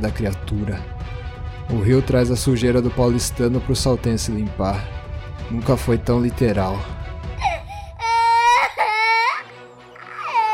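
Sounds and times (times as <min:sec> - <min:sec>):
speech: 0:00.0 - 0:01.0, 0:01.7 - 0:07.0
boy screaming and crying: 0:07.4 - 0:10.5.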